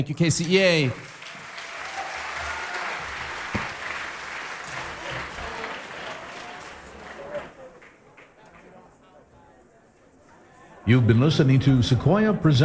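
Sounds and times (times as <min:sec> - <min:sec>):
speech: 0:00.0 - 0:01.2, 0:10.9 - 0:12.6
audience applause at a Carlmont High School spring concert in Belmont, California: 0:00.4 - 0:09.0.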